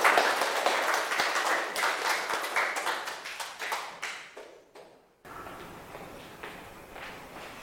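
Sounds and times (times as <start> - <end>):
audience applause: 0.0 - 4.2.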